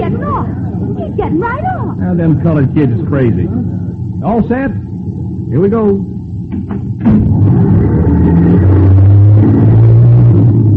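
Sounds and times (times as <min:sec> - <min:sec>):
speech: 0:01.2 - 0:04.9, 0:05.5 - 0:06.1
bus engine starting and revving as bus pulls away: 0:07.0 - 0:10.7.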